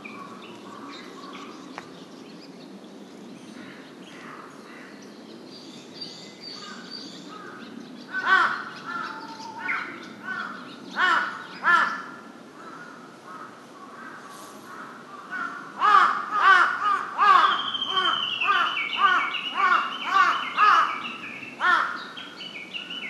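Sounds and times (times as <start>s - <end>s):
Large-billed crow giving harsh caws: 6.7s - 21.0s, 21.6s - 22.0s.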